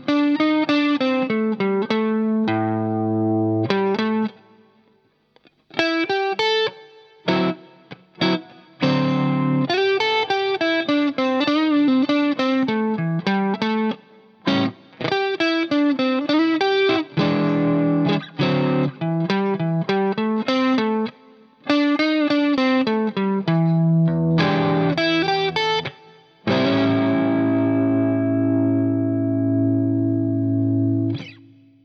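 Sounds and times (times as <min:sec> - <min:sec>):
12 bar blues study on guitar: 0:00.0 - 0:04.6, 0:05.4 - 0:31.8.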